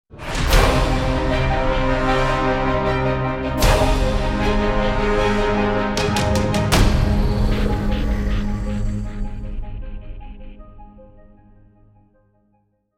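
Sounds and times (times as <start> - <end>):
music: 0.1 - 12.9.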